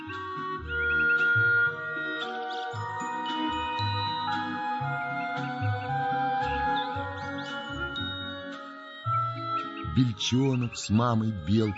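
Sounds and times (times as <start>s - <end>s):
grey thrush singing: 0.0s - 11.7s
music with low sustained chords: 0.0s - 11.7s
speech: 10.0s - 11.7s.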